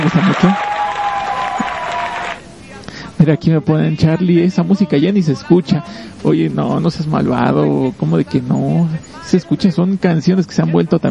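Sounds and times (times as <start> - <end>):
speech: 0.0 - 0.7, 3.2 - 11.1
audience applause: 0.0 - 2.4.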